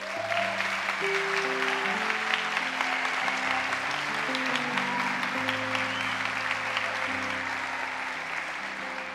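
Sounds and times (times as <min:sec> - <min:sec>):
crowd clapping: 0:00.0 - 0:09.1.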